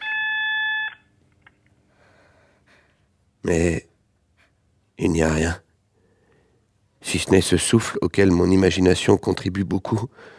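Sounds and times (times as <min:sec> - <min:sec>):
telephone answering machine beep: 0:00.0 - 0:01.1
speech: 0:03.4 - 0:03.9, 0:05.0 - 0:05.6, 0:07.1 - 0:10.3.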